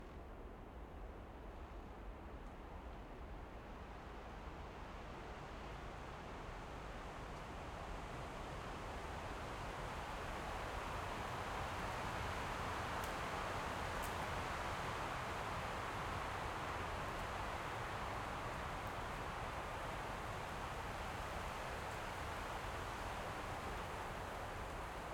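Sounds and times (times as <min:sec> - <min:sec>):
calm wind in pine tree forest in the Baltic: 0:00.0 - 0:25.1.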